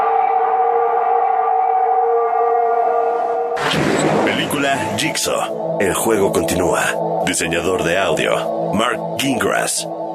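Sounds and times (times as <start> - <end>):
wolf howl from a werewolf film: 0.0 - 3.6
speech: 4.7 - 10.0.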